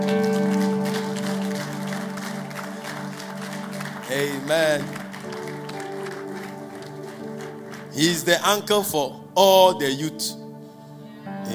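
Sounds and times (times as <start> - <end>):
audience clapping: 0.0 - 9.0
speech: 4.2 - 5.0, 8.0 - 10.4.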